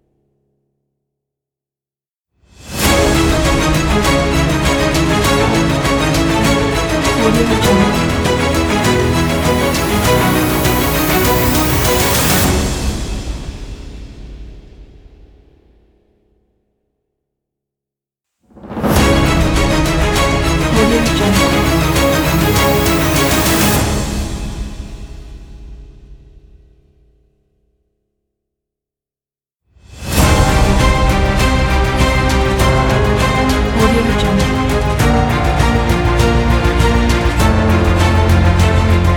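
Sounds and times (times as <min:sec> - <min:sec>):
epic cinematic logo intro: 0:02.6 - 0:14.9, 0:18.6 - 0:26.4, 0:29.8 - 0:39.1.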